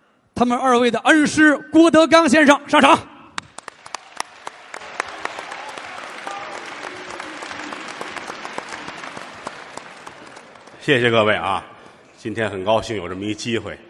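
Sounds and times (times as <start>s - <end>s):
speech: 0.4s - 3.1s, 10.9s - 13.8s
crowd applause welcoming performer on stage: 3.5s - 12.0s.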